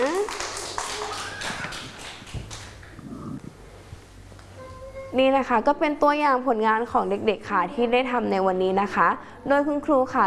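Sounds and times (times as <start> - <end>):
children clapping for a classmate: 0.0 - 3.0
speech: 5.2 - 10.2.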